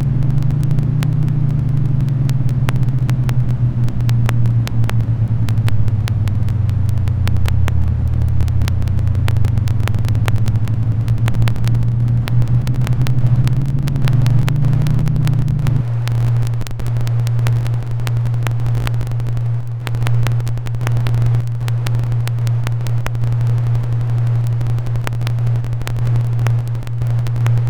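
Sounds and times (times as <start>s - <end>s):
soft noise: 0.0s - 27.6s.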